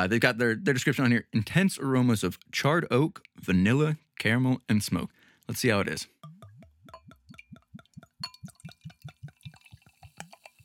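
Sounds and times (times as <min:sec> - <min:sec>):
speech: 0:00.0 - 0:06.2
beer glugging out of a bottle into a glass: 0:06.1 - 0:10.6.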